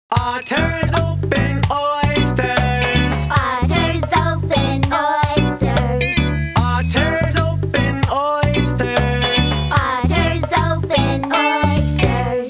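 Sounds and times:
song: 0:00.2 - 0:12.4.

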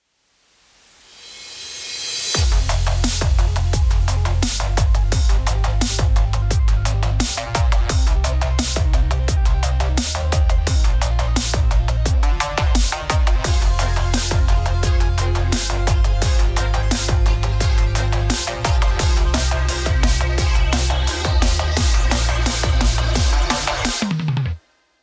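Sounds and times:
soft drum and bass: 0:00.7 - 0:24.6.

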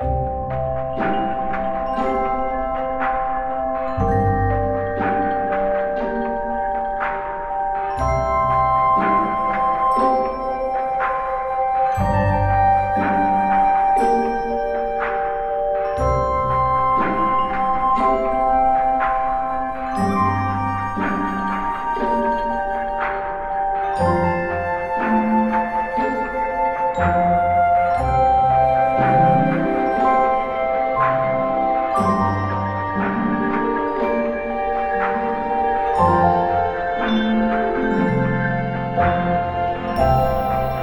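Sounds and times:
Christmas buildup game music: 0:00.0 - 0:40.8.

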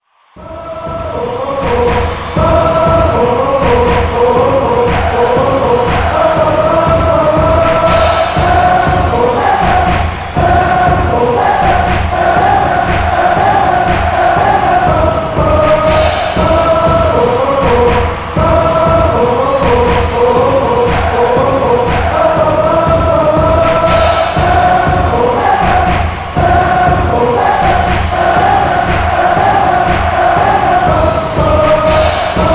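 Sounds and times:
choir chanting hallelujah: 0:00.3 - 0:32.5.

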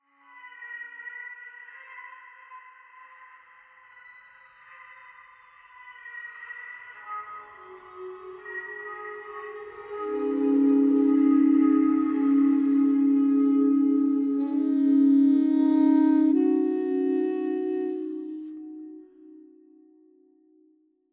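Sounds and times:
toy flute: 0:07.2 - 0:19.8
synth pads: 0:07.6 - 0:19.9.

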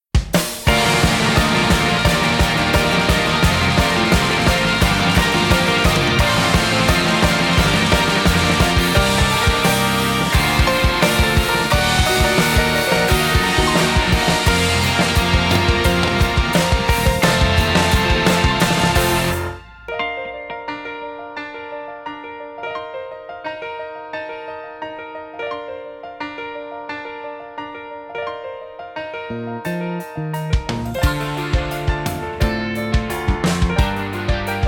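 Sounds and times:
short instrumental opening music: 0:00.4 - 0:21.1, 0:29.4 - 0:34.6.

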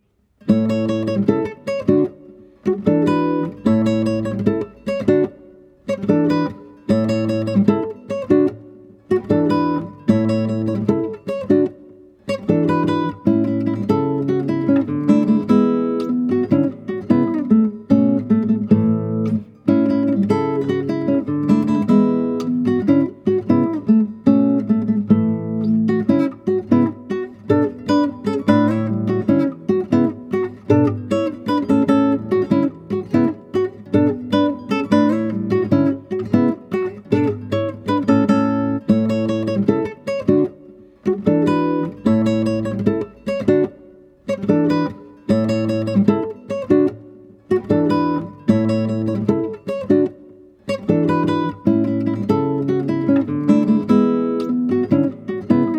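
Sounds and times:
background guitar music: 0:00.0 - 0:55.7.

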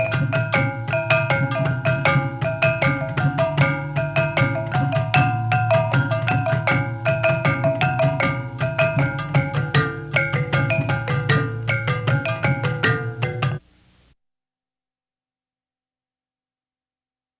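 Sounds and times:
tagunggo' gong rhythm: 0:00.0 - 0:13.6.

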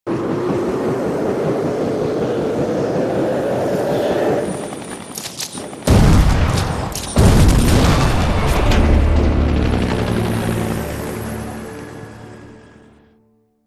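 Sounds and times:
helicopter: 0:00.1 - 0:13.1.

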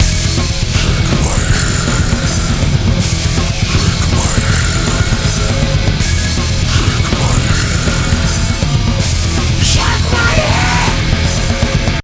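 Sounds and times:
metal music: 0:00.0 - 0:12.0.

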